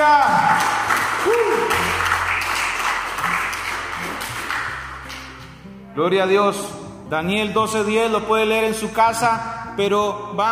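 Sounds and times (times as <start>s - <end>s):
audience clapping: 0.0s - 5.6s
speech: 6.0s - 10.4s.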